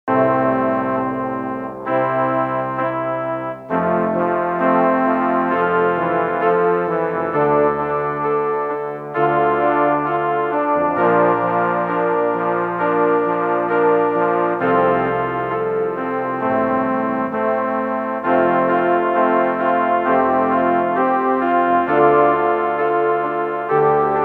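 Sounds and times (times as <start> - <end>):
cheesy trombones: 0.1 - 24.2.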